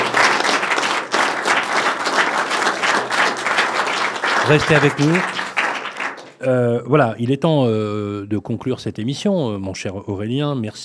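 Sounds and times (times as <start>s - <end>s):
audience applause: 0.0s - 6.5s
speech: 4.5s - 5.4s, 6.4s - 10.8s.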